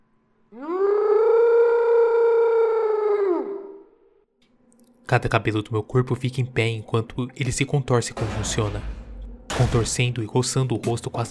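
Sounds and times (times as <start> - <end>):
speech: 0.5 - 0.8, 5.1 - 9.0, 9.6 - 11.3
monster screaming with a harsh buzzing tone: 0.6 - 3.9.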